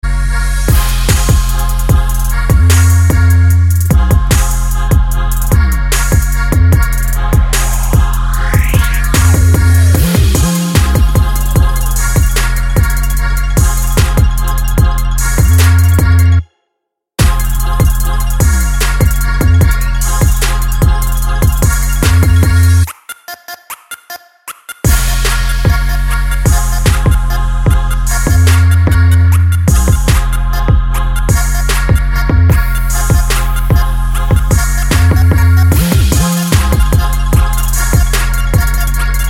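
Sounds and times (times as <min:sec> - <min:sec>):
trap music with boosted bass: 0:00.0 - 0:16.5, 0:17.2 - 0:39.2.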